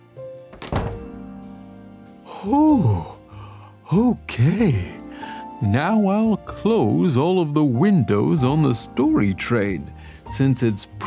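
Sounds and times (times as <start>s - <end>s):
house door being pushed shut: 0.5s - 1.3s
speech: 2.4s - 3.2s, 3.9s - 5.0s, 5.6s - 11.0s.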